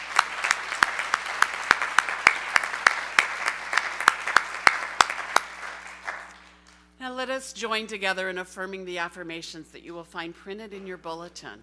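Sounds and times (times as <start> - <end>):
audience applauding: 0.0 - 6.8
speech: 7.2 - 11.6.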